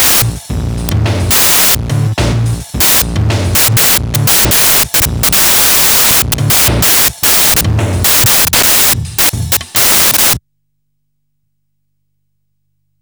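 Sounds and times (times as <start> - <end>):
techno music: 0.0 - 10.4.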